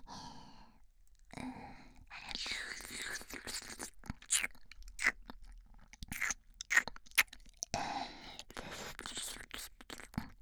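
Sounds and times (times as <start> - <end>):
ear licking: 2.7 - 10.3.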